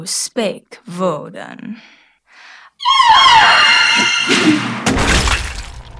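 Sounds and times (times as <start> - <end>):
speech: 0.0 - 2.0, 2.8 - 5.2
banshee witch's shrill wavering scream: 2.8 - 4.8
debris crashing and shattering: 4.3 - 5.9.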